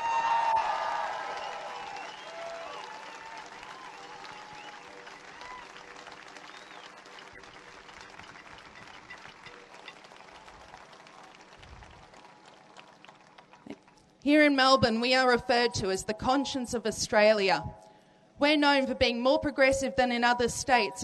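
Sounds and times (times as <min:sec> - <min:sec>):
big round of applause: 0:00.0 - 0:14.1
speech: 0:14.2 - 0:17.8, 0:18.4 - 0:21.0.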